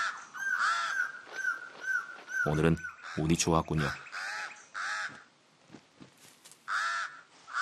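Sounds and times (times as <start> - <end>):
pied crow cawing: 0.0 - 3.3, 4.0 - 5.3, 6.6 - 7.5
speech: 2.4 - 4.1.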